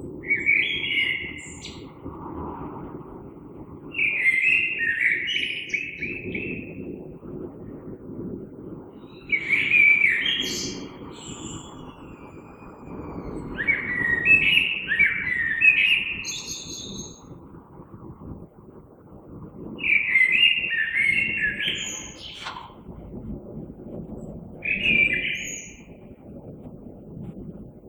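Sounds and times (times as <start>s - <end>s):
low background rumble: 0.0s - 27.8s
common blackbird singing: 0.2s - 1.9s, 4.0s - 6.8s, 9.0s - 17.3s, 19.8s - 23.2s, 24.2s - 26.2s.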